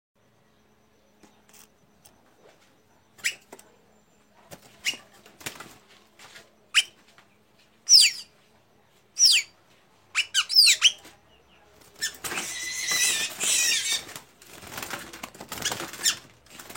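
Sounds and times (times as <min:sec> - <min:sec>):
tanager song with fast high squeaky chirps: 0:00.4 - 0:05.6, 0:06.7 - 0:07.0, 0:07.8 - 0:08.3, 0:09.2 - 0:14.2, 0:15.5 - 0:16.7.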